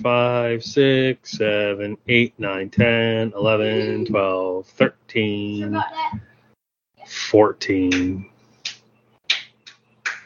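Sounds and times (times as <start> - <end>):
speech: 0.0 - 6.3, 7.1 - 8.3
child clapping hands in another room: 7.9 - 10.2.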